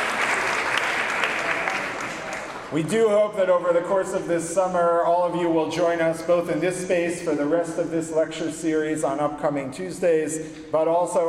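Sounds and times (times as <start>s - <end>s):
audience applause: 0.0s - 2.8s
speech: 2.7s - 11.2s.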